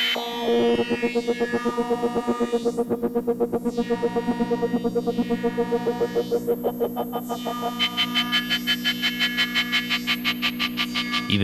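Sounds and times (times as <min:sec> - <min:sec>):
buzzy modular synth drone with clocked filter pulsing: 0:00.1 - 0:11.3.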